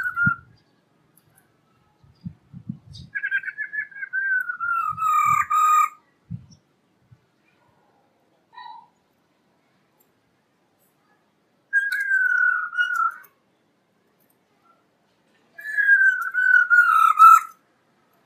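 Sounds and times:
black-throated laughingthrush song of whistles and a harsh burst: 0:00.0 - 0:00.5, 0:02.9 - 0:06.0, 0:11.7 - 0:13.3, 0:15.6 - 0:17.6.

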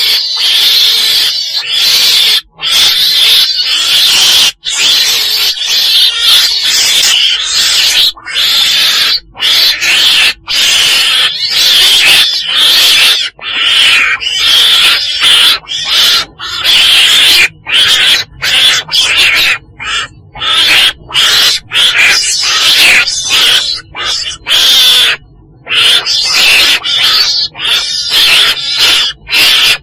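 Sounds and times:
weasel screeching: 0:00.0 - 0:29.8.

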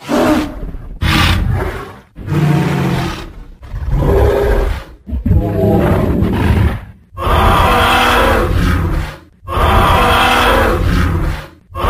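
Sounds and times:
dinosaur roaring: 0:00.0 - 0:11.8.

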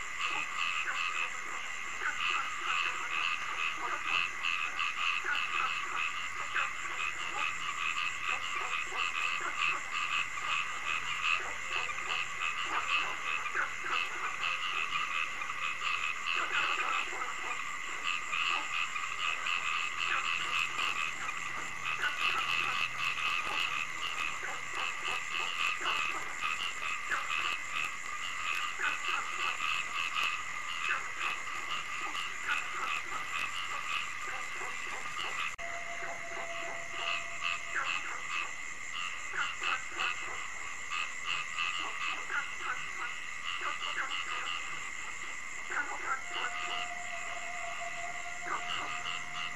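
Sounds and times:
many frogs croaking: 0:00.0 - 0:49.5
thin steady tone: 0:35.6 - 0:38.3, 0:46.0 - 0:49.5.

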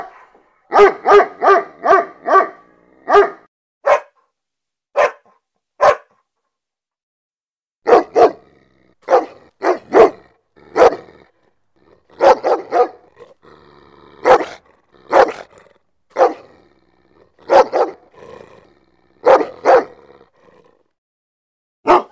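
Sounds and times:
German Shepherd barking: 0:00.0 - 0:04.3, 0:04.9 - 0:06.2, 0:07.8 - 0:11.2, 0:12.1 - 0:13.1, 0:14.2 - 0:15.5, 0:16.1 - 0:16.6, 0:17.4 - 0:18.2, 0:19.2 - 0:20.0, 0:21.8 - 0:22.1.

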